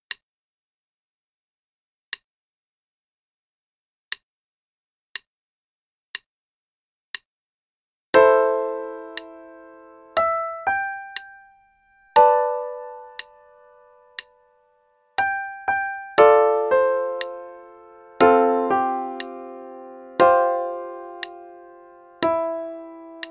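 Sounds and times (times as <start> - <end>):
piano played with the right hand only: 8.2 - 23.2.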